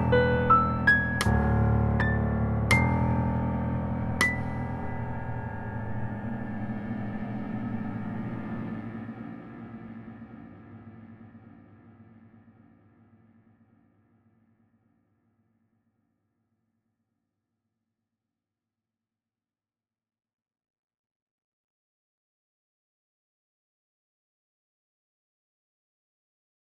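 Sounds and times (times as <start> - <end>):
solo piano: 0.0 - 8.8.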